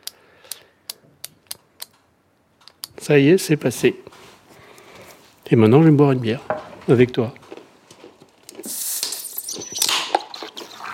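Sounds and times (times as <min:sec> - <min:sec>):
injection pen button clicks with needle in belly skin: 0:00.0 - 0:02.0
speech: 0:03.0 - 0:04.2, 0:05.5 - 0:07.4.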